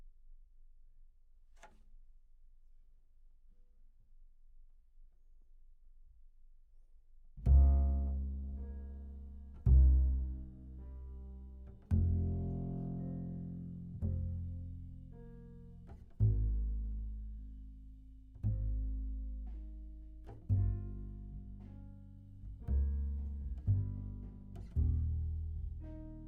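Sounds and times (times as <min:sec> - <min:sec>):
bass: 0:06.2 - 0:26.2.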